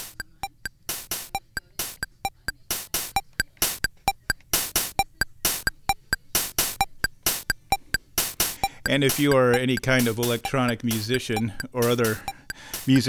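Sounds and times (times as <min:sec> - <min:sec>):
classic Casio electronic keyboard drum beat: 0:00.0 - 0:13.0
speech: 0:08.9 - 0:13.0.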